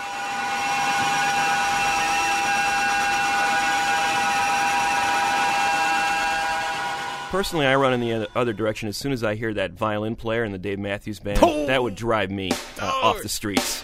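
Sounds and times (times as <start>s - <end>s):
grating screeching guitar feedback drone: 0.0s - 8.8s
speech: 7.3s - 13.8s.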